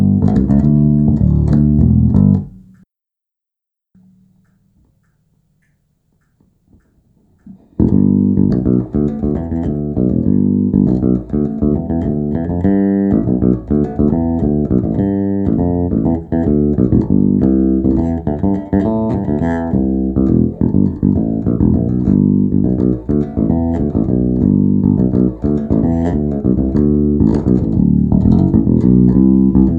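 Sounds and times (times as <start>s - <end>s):
fingered bass guitar: 0.0s - 2.8s, 7.4s - 29.7s.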